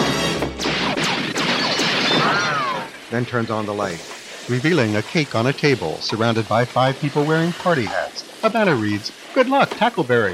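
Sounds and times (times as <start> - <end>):
gunshots fired into a room: 0.0 - 3.1
speech: 3.1 - 10.3.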